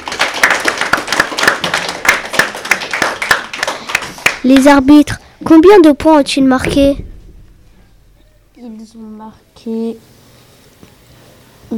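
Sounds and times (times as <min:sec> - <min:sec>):
audience clapping: 0:00.0 - 0:05.0
speech: 0:04.4 - 0:07.1, 0:08.6 - 0:10.1.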